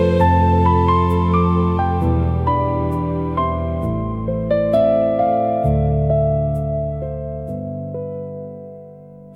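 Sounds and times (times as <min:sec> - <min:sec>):
fantasy nature forest music: 0:00.0 - 0:07.4.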